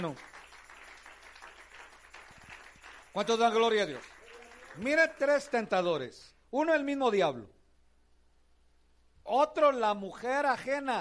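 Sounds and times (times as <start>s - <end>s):
speech: 0.0s - 0.4s, 3.2s - 4.1s, 4.8s - 7.6s, 9.2s - 11.0s
audience clapping hands: 0.0s - 6.0s.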